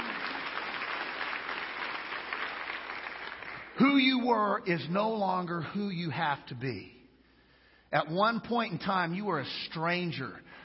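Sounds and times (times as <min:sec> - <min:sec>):
crowd hand clapping: 0:00.0 - 0:03.8
speech: 0:03.8 - 0:07.0, 0:07.9 - 0:10.6.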